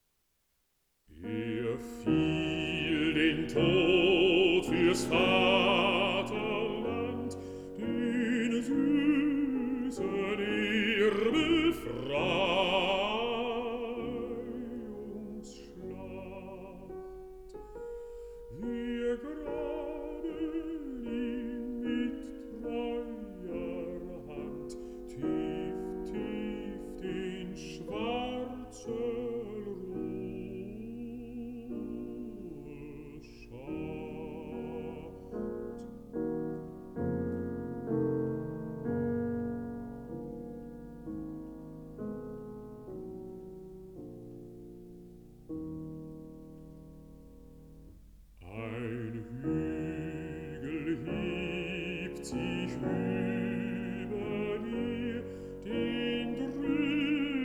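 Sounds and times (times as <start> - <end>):
piano: 0.0 - 57.4
person singing: 1.1 - 36.1, 48.4 - 57.4.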